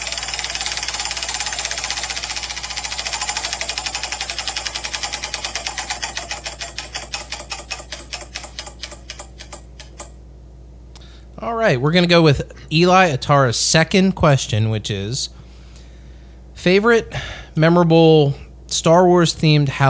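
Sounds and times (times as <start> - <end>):
prize wheel pointer clicking as the wheel spins: 0.0 - 10.2
speech: 11.6 - 15.4, 16.6 - 19.8.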